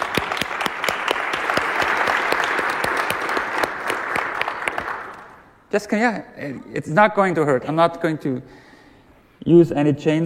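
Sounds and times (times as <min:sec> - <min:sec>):
audience applause: 0:00.0 - 0:05.4
speech: 0:05.7 - 0:08.7, 0:09.4 - 0:10.2.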